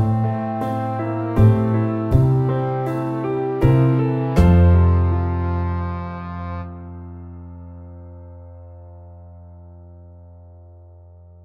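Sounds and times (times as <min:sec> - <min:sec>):
medium tempo soft rock music: 0:00.0 - 0:08.0.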